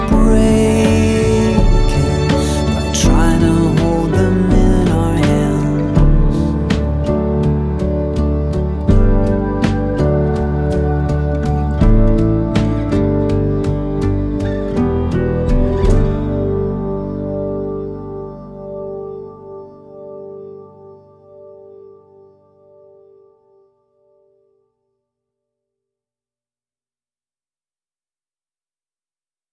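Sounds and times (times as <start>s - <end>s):
acoustic music: 0.0s - 23.4s.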